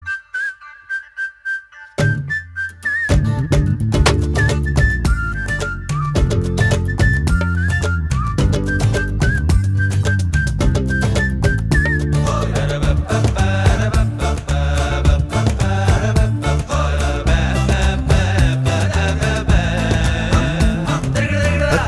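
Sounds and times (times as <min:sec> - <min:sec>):
promo song background music: 0:00.0 - 0:21.8.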